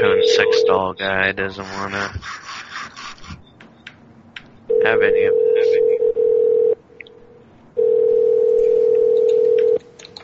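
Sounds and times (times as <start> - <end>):
speech: 0.3 - 2.4, 4.8 - 5.9
telephone ringing out on the line: 4.7 - 6.8, 7.8 - 9.8.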